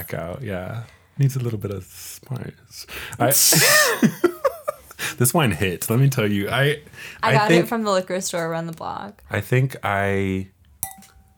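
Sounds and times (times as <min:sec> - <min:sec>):
speech: 0:00.0 - 0:04.4, 0:05.0 - 0:10.5
laughter: 0:03.3 - 0:05.2
wine glass clinking against tooth: 0:10.8 - 0:11.3.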